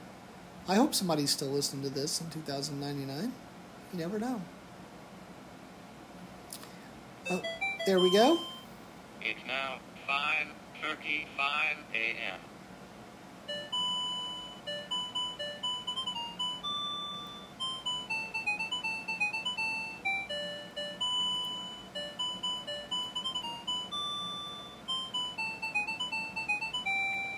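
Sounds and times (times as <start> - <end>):
speech: 0.7 - 4.6, 7.3 - 8.5, 9.2 - 12.5
alarm clock ringing with melodic bell-like chime tune: 7.3 - 8.6, 13.5 - 27.3.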